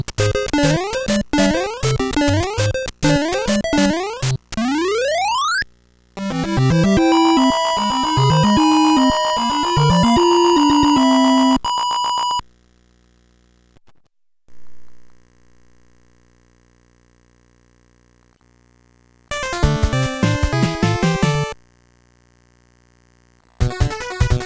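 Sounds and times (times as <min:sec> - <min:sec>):
Famicom cartridge game audio: 0:00.0 - 0:05.6, 0:06.2 - 0:12.4, 0:19.3 - 0:21.6, 0:23.6 - 0:24.4.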